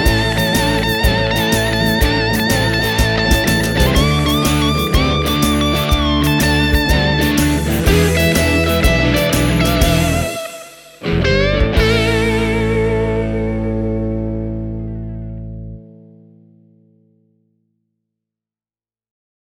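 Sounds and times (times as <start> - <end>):
dual tone: 0.0 - 15.8.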